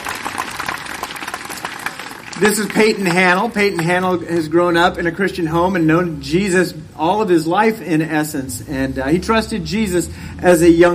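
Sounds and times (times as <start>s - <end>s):
audience applauding: 0.0s - 4.0s
speech: 2.4s - 10.9s.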